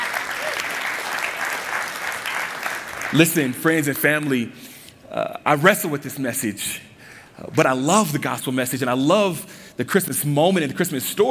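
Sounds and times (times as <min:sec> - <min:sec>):
audience clapping hands: 0:00.0 - 0:04.2
speech: 0:03.1 - 0:11.2.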